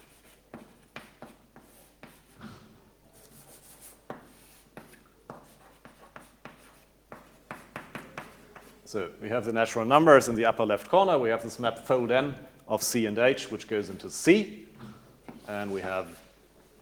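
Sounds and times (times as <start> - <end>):
hand drawing a mathematical diagram with scratchy strokes: 0.0 - 2.4, 3.2 - 8.9
speech: 8.9 - 14.7, 15.5 - 16.2.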